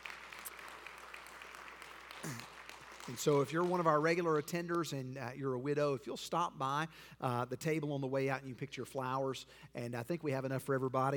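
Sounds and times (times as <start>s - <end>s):
audience clapping: 0.0s - 4.8s
speech: 2.2s - 2.5s, 3.1s - 11.1s.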